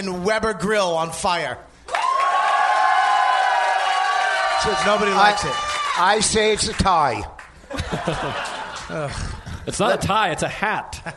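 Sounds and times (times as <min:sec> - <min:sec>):
speech: 0:00.0 - 0:01.7, 0:04.6 - 0:11.1
applause: 0:01.9 - 0:09.0
crowd cheering: 0:01.9 - 0:09.2
laughter: 0:07.6 - 0:11.1.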